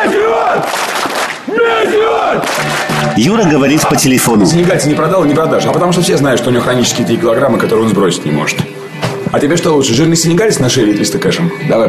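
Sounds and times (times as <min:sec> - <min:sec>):
football fans cheering loudly in unison: 0:00.0 - 0:06.6
football fans chanting shouts: 0:00.0 - 0:06.7
speech: 0:03.2 - 0:11.8.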